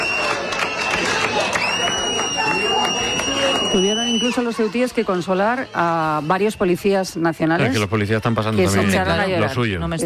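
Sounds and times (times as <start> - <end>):
crowd applauding police officers: 0.0 - 5.9
speech: 3.7 - 10.0.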